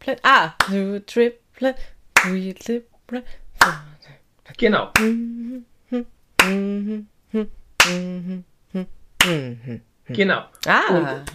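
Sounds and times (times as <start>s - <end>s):
speech: 0.1s - 11.3s
hand claps on the downbeats: 2.2s - 2.5s, 3.6s - 4.0s, 5.0s - 5.3s, 6.4s - 6.7s, 7.8s - 8.2s, 9.2s - 9.4s.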